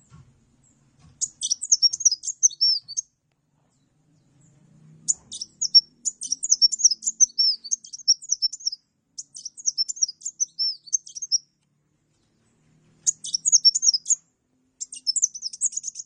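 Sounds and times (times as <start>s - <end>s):
bird singing bright high-pitched phrases with rapid clicking stutters: 1.2s - 3.2s, 3.8s - 11.6s, 13.0s - 16.0s.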